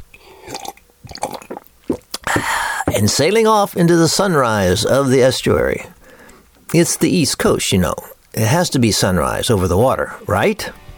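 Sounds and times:
person gulping a drink from a cup: 0:00.0 - 0:03.2
speech: 0:03.0 - 0:06.0, 0:06.7 - 0:10.8.

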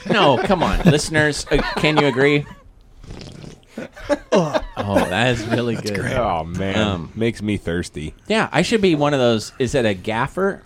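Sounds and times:
speech: 0:00.0 - 0:02.6, 0:03.8 - 0:10.6
laughter: 0:00.0 - 0:02.7, 0:03.7 - 0:06.4
wet gulping mouth sounds: 0:02.8 - 0:03.8
noisy slurping sip from a drink: 0:02.9 - 0:03.8.

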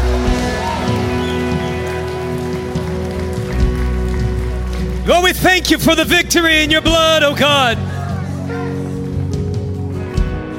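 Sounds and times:
audience clapping hands: 0:00.0 - 0:10.5
speech: 0:05.1 - 0:07.9.

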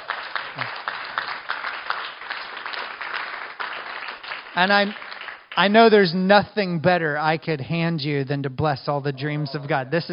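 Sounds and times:
audience applause: 0:00.0 - 0:05.7
speech: 0:04.6 - 0:05.0, 0:05.6 - 0:10.1.

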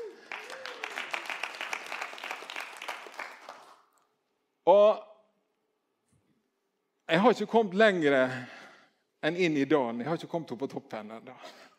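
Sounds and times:
audience applause: 0:00.0 - 0:03.8
speech: 0:04.7 - 0:05.1, 0:07.1 - 0:08.6, 0:09.2 - 0:11.6.

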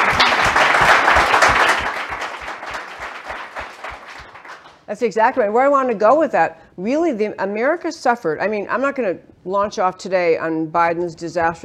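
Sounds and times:
clapping: 0:00.0 - 0:04.8
speech: 0:04.9 - 0:11.6.

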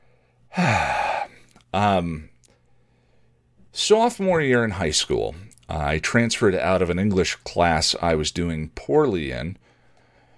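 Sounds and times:
deep breath: 0:00.0 - 0:01.6, 0:02.5 - 0:03.5, 0:09.6 - 0:10.3
speech: 0:01.8 - 0:02.3, 0:03.8 - 0:09.6.

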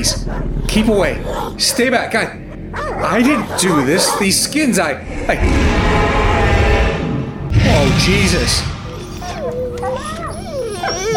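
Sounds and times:
dogs whimpering: 0:00.0 - 0:05.0, 0:08.9 - 0:11.1
speech: 0:00.0 - 0:06.4, 0:07.6 - 0:08.7.

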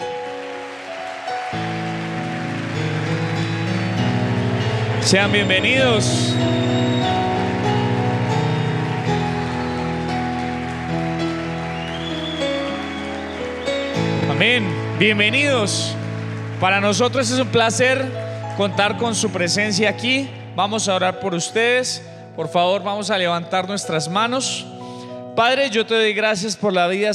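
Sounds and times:
loud applause: 0:00.0 - 0:20.3
speech: 0:05.0 - 0:06.5, 0:14.4 - 0:16.0, 0:16.6 - 0:24.8, 0:25.4 - 0:27.1.

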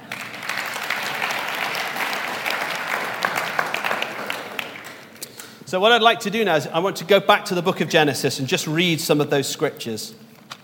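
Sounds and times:
audience clapping: 0:00.0 - 0:05.4
speech: 0:05.7 - 0:10.3.

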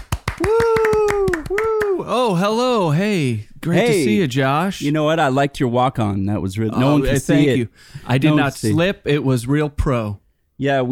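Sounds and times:
applause: 0:00.0 - 0:02.0
speech: 0:01.5 - 0:10.8.

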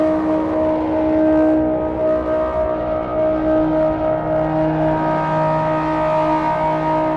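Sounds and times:
modular synthesizer subharmonic drone: 0:00.0 - 0:07.1.

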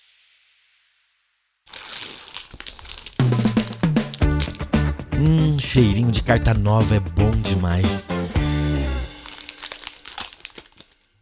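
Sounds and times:
Magic The Gathering Wilds of Eldraine booster pack wrapper torn open: 0:01.7 - 0:04.8, 0:09.0 - 0:11.1
speech: 0:05.2 - 0:08.6.

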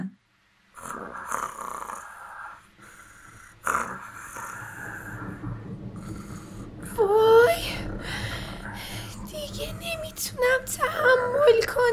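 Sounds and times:
grasshopper snoring: 0:00.7 - 0:11.4.

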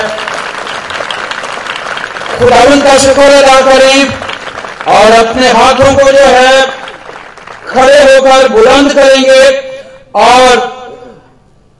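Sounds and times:
loud applause from a large audience: 0:00.0 - 0:07.8
speech: 0:02.4 - 0:06.8, 0:07.7 - 0:10.7.

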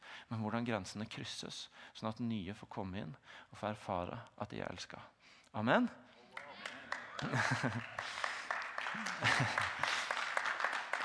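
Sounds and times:
speech: 0:00.3 - 0:06.1, 0:07.2 - 0:08.2, 0:08.9 - 0:09.8
half-hearted audience clapping: 0:06.3 - 0:11.0
laughter: 0:06.5 - 0:10.9.

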